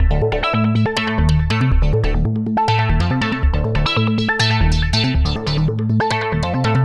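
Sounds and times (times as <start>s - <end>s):
synth: 0.0s - 6.5s.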